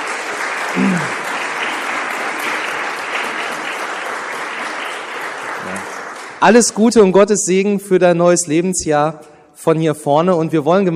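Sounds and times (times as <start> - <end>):
audience applause: 0.0 - 6.6
speech: 0.7 - 1.2, 6.4 - 10.9.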